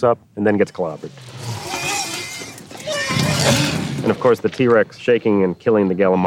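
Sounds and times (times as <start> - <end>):
speech: 0.0 - 1.4, 3.4 - 6.2
mournful horse cry sound effect: 1.0 - 5.0.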